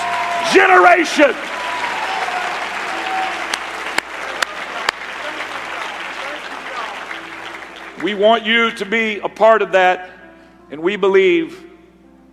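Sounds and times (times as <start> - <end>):
audience clapping hands: 0.0 - 8.4
speech: 0.5 - 1.6, 8.0 - 11.6.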